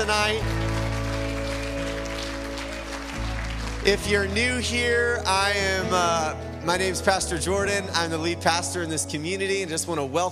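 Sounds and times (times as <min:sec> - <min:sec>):
church congregation at Riverhouse applauding the choir: 0:00.0 - 0:06.0
speech: 0:03.8 - 0:10.3.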